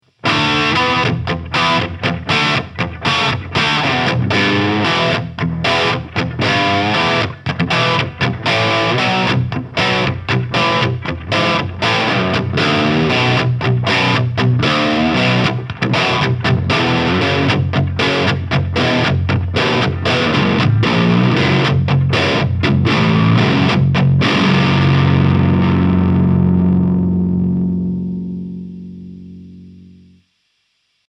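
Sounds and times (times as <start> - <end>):
Jackson Soloist 8 electric guitar with crunch tone: 0.0 - 30.2.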